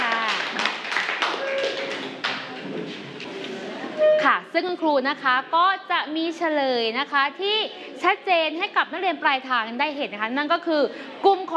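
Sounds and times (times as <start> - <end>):
classroom applause for a student group: 0.0 - 2.8
speech: 4.6 - 11.5.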